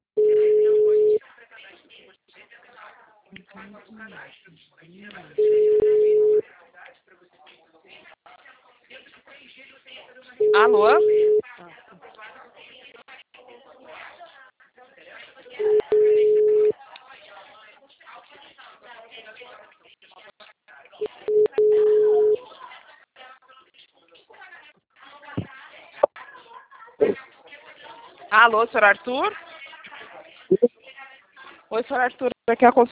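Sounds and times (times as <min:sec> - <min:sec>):
band-limited phone-line voices: 0:00.2 - 0:01.2, 0:10.4 - 0:11.4, 0:15.6 - 0:16.7, 0:21.0 - 0:22.4
telephone line tone beeps after a dropped call: 0:00.2 - 0:01.2, 0:05.4 - 0:06.4, 0:10.4 - 0:11.4, 0:15.6 - 0:16.7, 0:21.0 - 0:22.4
speech: 0:03.6 - 0:06.1, 0:10.5 - 0:11.2, 0:28.4 - 0:29.5, 0:31.7 - 0:32.8.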